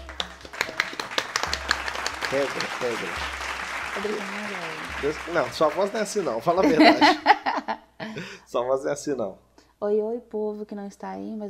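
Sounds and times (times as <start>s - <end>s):
small group clapping: 0.0s - 7.4s
laughter: 2.2s - 8.4s
speech: 2.3s - 3.4s, 4.0s - 7.4s, 8.1s - 11.4s.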